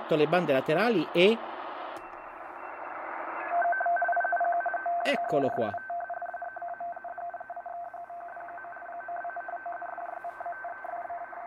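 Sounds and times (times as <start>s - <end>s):
two-tone digital radio signal: 0.0s - 11.4s
speech: 0.1s - 1.5s, 5.0s - 5.9s.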